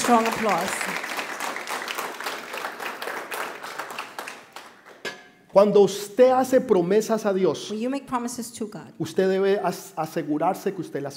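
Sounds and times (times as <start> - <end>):
audience applause: 0.0 - 5.0
speech: 0.1 - 1.0, 5.5 - 11.1.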